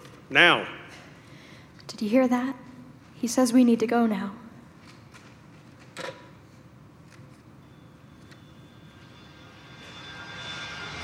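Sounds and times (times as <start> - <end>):
speech: 0.3 - 0.8, 1.9 - 2.6, 3.2 - 4.4
airplane engine roaring in flight: 9.0 - 11.0.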